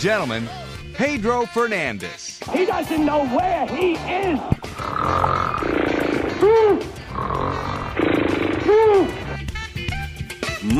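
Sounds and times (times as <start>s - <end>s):
speech: 0.0s - 5.8s, 6.4s - 6.9s, 8.7s - 9.2s
loud snoring: 4.6s - 9.5s.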